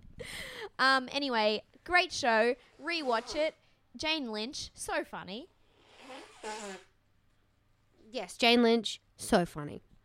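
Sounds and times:
speech: 0:00.3 - 0:05.5, 0:06.4 - 0:06.9, 0:08.1 - 0:09.9
person blowing nose: 0:02.7 - 0:03.6, 0:05.7 - 0:07.0.

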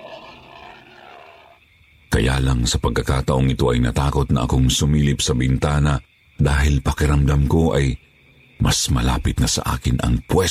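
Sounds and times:
menacing creature growling: 0:00.0 - 0:01.6
speech: 0:02.2 - 0:10.4.

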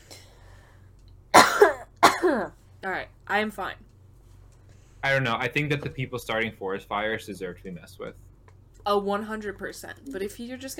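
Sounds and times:
person coughing from choking on water: 0:01.3 - 0:02.6
speech: 0:02.2 - 0:03.9, 0:05.0 - 0:08.2, 0:08.8 - 0:10.7.

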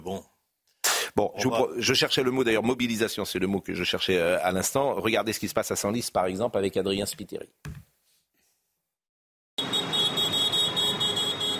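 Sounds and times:
speech: 0:00.1 - 0:00.3, 0:01.2 - 0:07.8
tractor horns honking at farmers' protest: 0:09.6 - 0:11.5.

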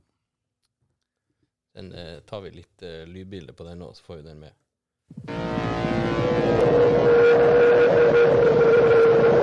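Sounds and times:
speech: 0:01.8 - 0:08.7
howling droning tone from TV theme music: 0:05.3 - 0:09.4.

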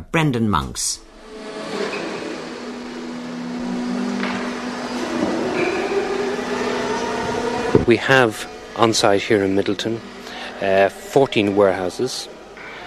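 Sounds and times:
speech: 0:00.1 - 0:01.1, 0:07.8 - 0:12.3
forklift truck engine droning hum with low tonal whine in a warehouse: 0:01.1 - 0:12.8.

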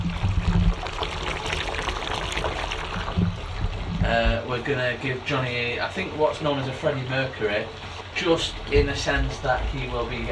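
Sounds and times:
low rumbling thuds: 0:00.0 - 0:00.8, 0:03.0 - 0:04.6, 0:08.5 - 0:10.3
bath filling from a running tap: 0:00.0 - 0:10.3
speech: 0:04.2 - 0:10.3.

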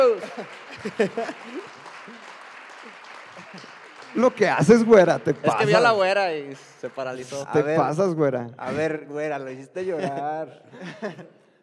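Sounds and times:
laughter: 0:00.0 - 0:01.8, 0:04.6 - 0:06.1, 0:09.8 - 0:11.4
speech: 0:00.0 - 0:02.2, 0:03.5 - 0:11.4
applause: 0:00.0 - 0:07.8.

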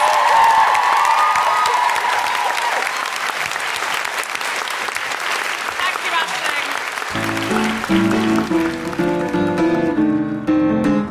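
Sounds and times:
whoops and cheers: 0:00.0 - 0:03.2
crowd clapping: 0:00.0 - 0:10.0.

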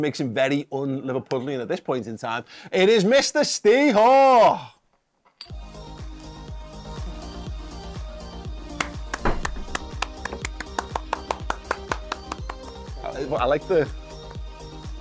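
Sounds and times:
speech: 0:00.0 - 0:04.8, 0:13.2 - 0:14.0
one person clapping: 0:08.7 - 0:12.9.

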